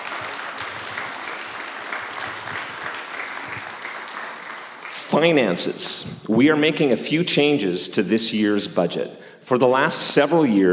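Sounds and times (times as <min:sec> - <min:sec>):
audience applause: 0:00.0 - 0:05.7
speech: 0:05.1 - 0:10.7.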